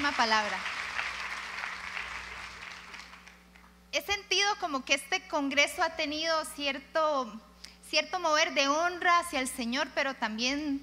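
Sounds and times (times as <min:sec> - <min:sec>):
audience applause: 0:00.0 - 0:03.6
speech: 0:00.1 - 0:00.8, 0:03.9 - 0:10.8.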